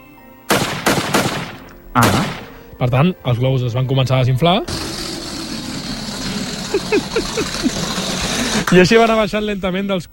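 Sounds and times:
air rifle shot: 0:00.5 - 0:02.6
speech: 0:02.0 - 0:04.8, 0:06.7 - 0:08.0, 0:08.6 - 0:10.1
laughter: 0:05.1 - 0:08.7.

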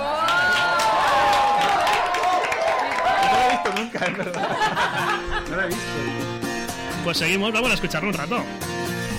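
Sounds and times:
applause and cheering: 0:00.0 - 0:04.9
laughter: 0:03.1 - 0:06.2
speech: 0:04.0 - 0:06.4, 0:07.0 - 0:09.0.

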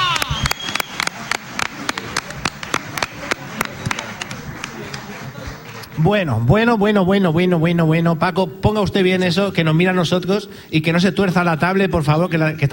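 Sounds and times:
audience applause: 0:00.0 - 0:06.0
speech: 0:06.0 - 0:12.7.

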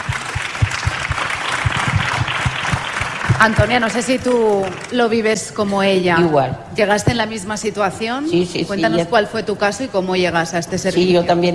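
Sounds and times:
applause: 0:00.0 - 0:05.0
speech: 0:03.4 - 0:11.5.

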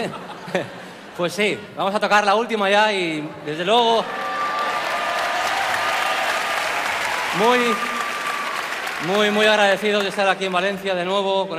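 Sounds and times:
laughter: 0:00.0 - 0:01.0
speech: 0:00.0 - 0:04.2, 0:07.4 - 0:08.0, 0:09.0 - 0:11.5
audience applause calling for encore: 0:04.0 - 0:10.6.

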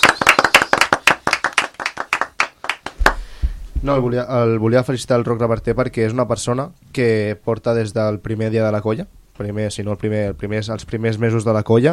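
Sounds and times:
small group clapping: 0:00.0 - 0:03.3
speech: 0:03.8 - 0:11.9.

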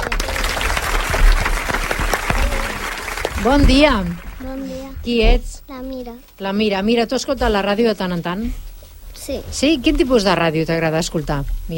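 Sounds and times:
audience applause: 0:00.0 - 0:05.1
speech: 0:03.4 - 0:08.6, 0:09.2 - 0:11.7.

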